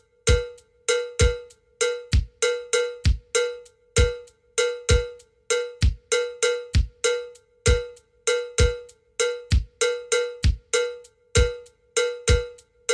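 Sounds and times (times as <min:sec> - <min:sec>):
slow standard twelve-pulse bell pattern: 0:00.3 - 0:12.9.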